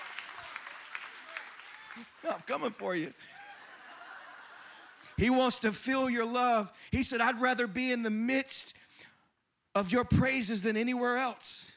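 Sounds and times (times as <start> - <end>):
audience clapping: 0.0 - 4.9
speech: 2.0 - 3.4, 5.2 - 8.8, 9.8 - 11.7
laughter: 2.0 - 5.8.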